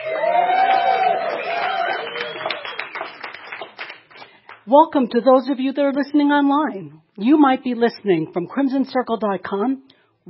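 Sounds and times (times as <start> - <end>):
live audience cheering at a celebratory gathering: 0.0 - 3.9
live audience clapping: 0.0 - 4.7
people chatting: 4.7 - 10.2
speech: 4.7 - 10.2.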